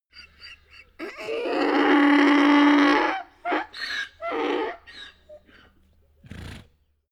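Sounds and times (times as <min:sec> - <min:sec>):
donkey braying: 0:00.2 - 0:05.8.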